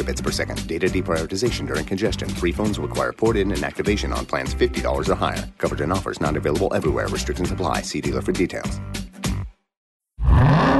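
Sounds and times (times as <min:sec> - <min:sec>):
speech: 0:00.0 - 0:09.0
supercharged 6.2-liter Hemi V8 engine revving: 0:10.2 - 0:10.7.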